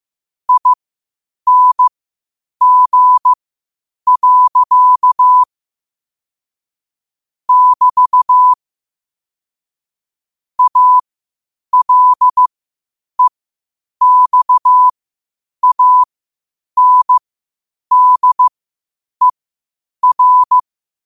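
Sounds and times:
morse code at 5 wpm: 0.5 - 0.8, 1.5 - 1.9, 2.6 - 3.4, 4.1 - 5.5, 7.5 - 8.6, 10.6 - 11.0, 11.7 - 12.5, 14.0 - 14.9, 15.6 - 16.1, 16.8 - 17.2, 17.9 - 18.5, 20.0 - 20.6.

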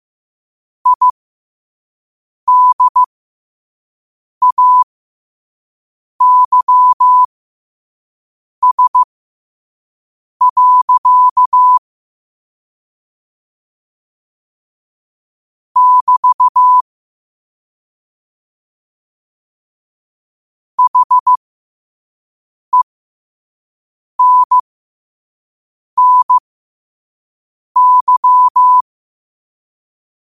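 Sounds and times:
morse code at 5 wpm: 0.9 - 1.2, 2.5 - 3.1, 4.4 - 4.8, 6.2 - 7.3, 8.6 - 9.1, 10.4 - 11.8, 15.8 - 16.8, 20.8 - 21.4, 24.2 - 24.6, 26.0 - 26.4, 27.8 - 28.8.

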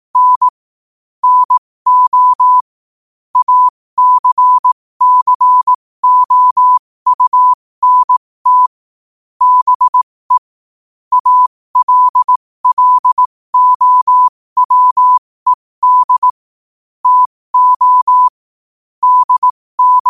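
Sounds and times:
morse code at 5 wpm: 0.2 - 0.5, 1.2 - 2.6, 3.4 - 8.7, 9.4 - 10.4, 11.1 - 16.4, 17.0 - 18.4, 19.0 - 20.0.

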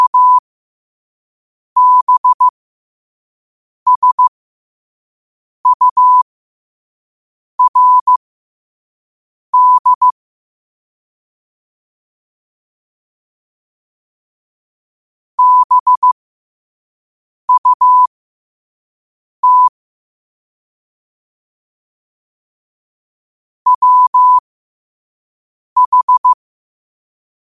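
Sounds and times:
morse code at 5 wpm: 0.0 - 0.4, 1.8 - 2.5, 3.9 - 4.3, 5.7 - 6.2, 7.6 - 8.2, 9.6 - 10.1, 15.4 - 16.2, 17.5 - 18.1, 19.4 - 19.7, 23.7 - 24.4, 25.8 - 26.4.

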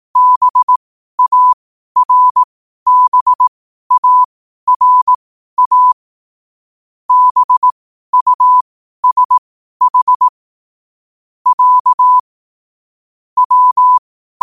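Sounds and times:
morse code at 5 wpm: 0.2 - 6.0, 7.1 - 10.3, 11.5 - 12.2, 13.4 - 14.4.

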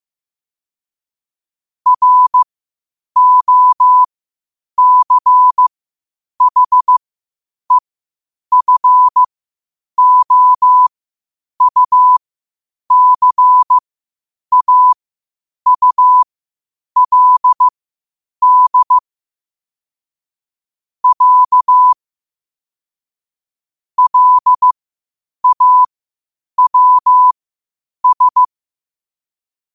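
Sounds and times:
morse code at 5 wpm: 1.9 - 2.5, 3.2 - 4.1, 4.8 - 5.7, 6.4 - 7.0, 8.5 - 9.3, 10.0 - 10.9, 11.6 - 12.2, 12.9 - 13.8, 14.5 - 15.0, 15.7 - 16.3, 17.0 - 17.7, 18.4 - 19.0, 21.0 - 22.0, 24.0 - 24.8, 25.4 - 25.9, 26.6 - 27.4, 28.0 - 28.5.

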